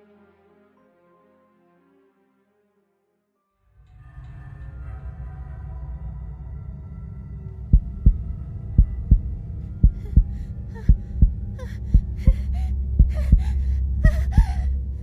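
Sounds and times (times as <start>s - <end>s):
loud heartbeat: 7.7s - 14.7s
heavy breathing: 9.8s - 15.0s.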